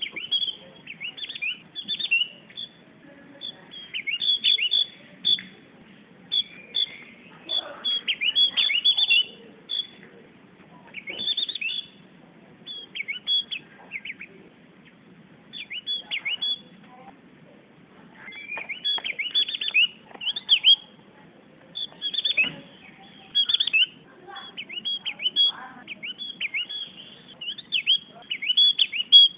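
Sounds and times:
Javan grey-throated white-eye song: 0.0 - 17.1, 18.1 - 29.3.

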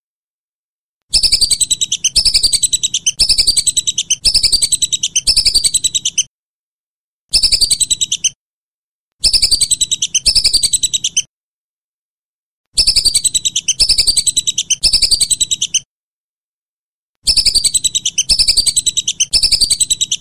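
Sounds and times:
whistling duck chirped whistles: 1.1 - 6.3, 7.3 - 8.4, 9.2 - 11.3, 12.8 - 15.8, 17.2 - 20.1.

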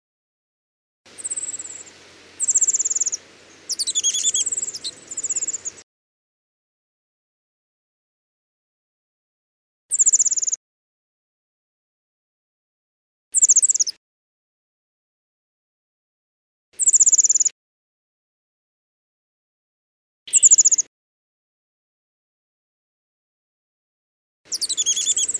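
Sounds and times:
warbler alarm call: 1.1 - 5.8, 24.5 - 25.3.

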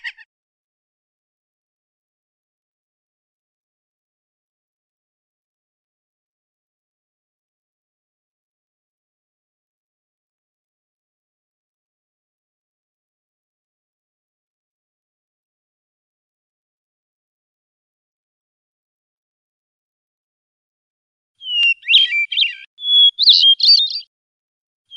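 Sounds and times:
Oriental magpie-robin singing rolling song: 21.4 - 24.1.

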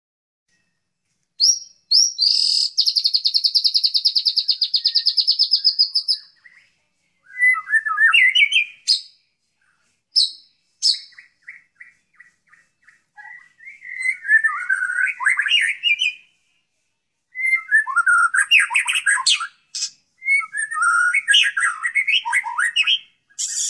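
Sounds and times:
White-rumped shama whistled song: 1.4 - 6.5, 7.3 - 9.2, 10.2 - 16.3, 17.3 - 23.6.

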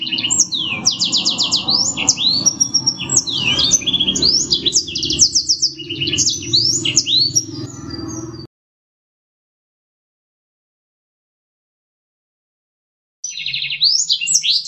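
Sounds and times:
black-throated canary singing: 0.0 - 8.5, 13.2 - 14.6.

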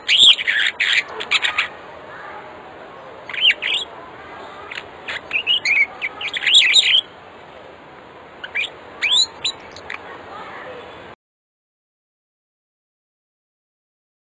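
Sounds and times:
African starling singing with whistled notes: 0.0 - 1.7, 3.3 - 3.9, 5.1 - 7.1, 8.4 - 10.0.

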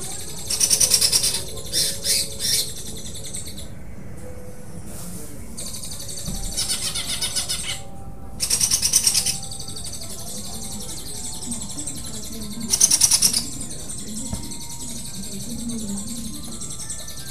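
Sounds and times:
Greater green leafbird song: 0.0 - 17.2
low background hum: 0.0 - 17.2.

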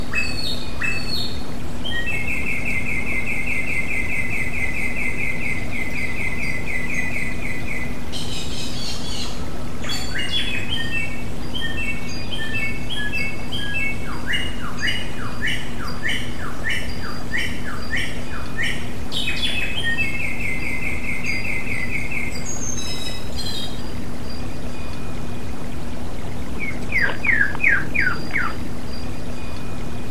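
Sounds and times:
song for cage birds: 0.0 - 30.1.

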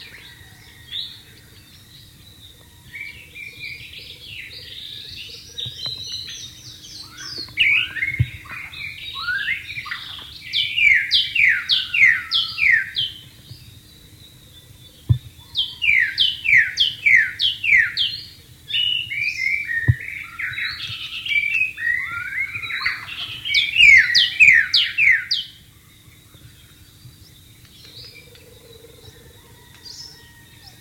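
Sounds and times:
white-rumped shama song of slurred whistles: 2.9 - 30.7
faint low thumps: 15.0 - 15.5.

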